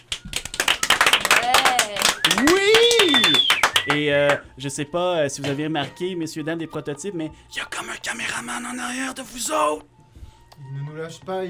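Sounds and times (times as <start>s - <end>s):
people in a radio studio clapping: 0.0s - 4.5s
speech: 4.0s - 10.0s, 10.6s - 11.4s.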